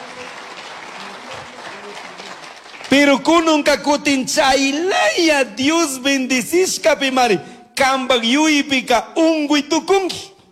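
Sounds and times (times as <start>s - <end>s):
audience applause: 0.0s - 3.5s
speech: 2.9s - 10.3s.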